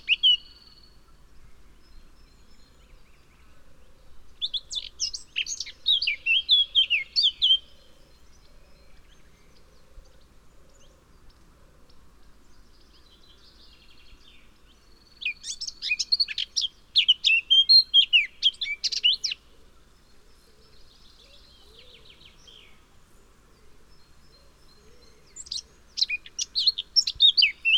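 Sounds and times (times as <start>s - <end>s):
Eurasian blackcap singing: 0.0s - 0.9s, 4.4s - 7.7s, 12.9s - 19.5s, 23.9s - 27.7s.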